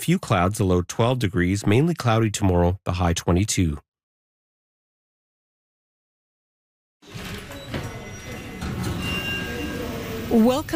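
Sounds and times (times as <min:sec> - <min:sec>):
speech: 0:00.0 - 0:03.9, 0:10.3 - 0:10.7
elevator rumbling at a French resistance and deportation history center: 0:07.1 - 0:10.7.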